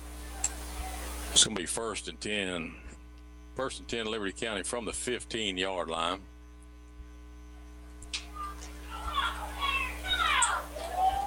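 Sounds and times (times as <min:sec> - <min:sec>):
stadium crowd getting restless: 0:00.0 - 0:01.5, 0:08.2 - 0:11.2
speech: 0:01.4 - 0:02.8, 0:03.6 - 0:06.3.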